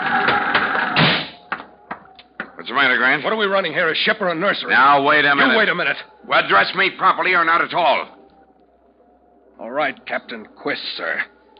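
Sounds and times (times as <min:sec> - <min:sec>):
cabin door bursting open: 0:00.0 - 0:01.7
speech: 0:02.6 - 0:08.2, 0:09.6 - 0:11.3.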